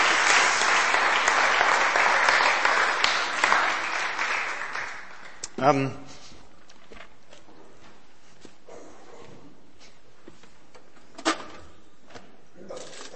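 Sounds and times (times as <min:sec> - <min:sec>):
round of applause: 0:00.0 - 0:05.6.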